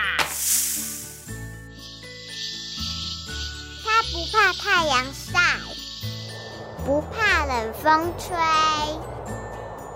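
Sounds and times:
steady tonal music: 0.0s - 9.9s
snake hissing: 0.1s - 6.6s
speech: 4.1s - 5.7s, 6.9s - 9.2s.

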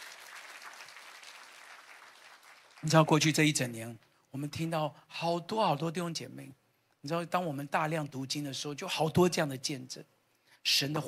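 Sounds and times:
audience clapping: 0.0s - 3.2s
speech: 2.8s - 11.0s.

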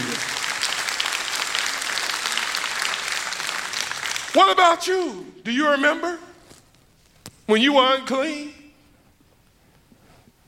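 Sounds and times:
audience clapping: 0.0s - 5.2s
speech: 4.4s - 6.3s, 7.5s - 8.6s.

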